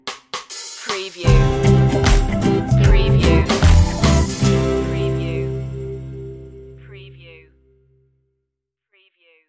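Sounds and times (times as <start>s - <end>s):
roots reggae stinger: 1.3s - 7.0s.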